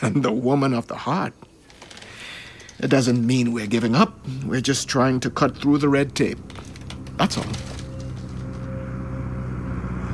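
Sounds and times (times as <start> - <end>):
speech: 0.0 - 1.5, 2.8 - 7.7
airplane: 7.4 - 10.1.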